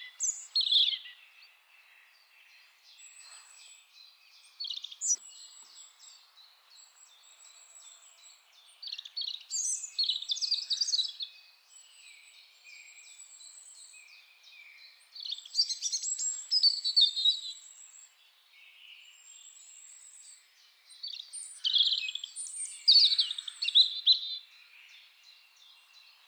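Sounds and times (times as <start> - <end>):
soft background bird calls: 0.0 - 26.2.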